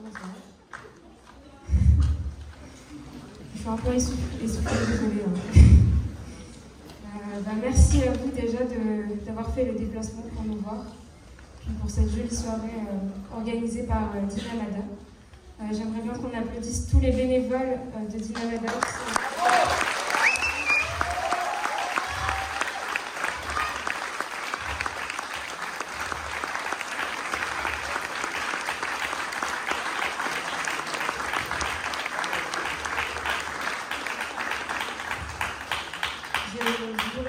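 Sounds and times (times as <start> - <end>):
speech: 3.6 - 5.8, 7.4 - 11.0, 11.6 - 15.0, 15.6 - 19.6
audience applause: 18.7 - 37.2.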